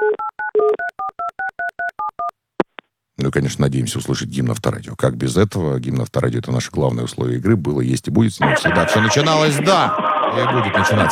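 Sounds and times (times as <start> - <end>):
telephone dialing tones: 0.0 - 2.3
speech: 3.3 - 11.1.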